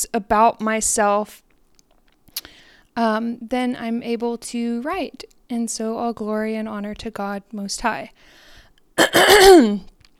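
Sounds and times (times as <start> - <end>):
speech: 0.1 - 1.4, 2.4 - 8.4, 9.0 - 9.9
throat clearing: 9.0 - 9.8.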